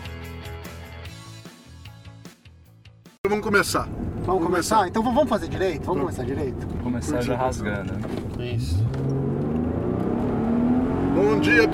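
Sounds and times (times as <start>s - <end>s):
speech: 3.3s - 9.2s, 11.2s - 11.7s
six-cylinder car engine revving: 5.5s - 11.7s.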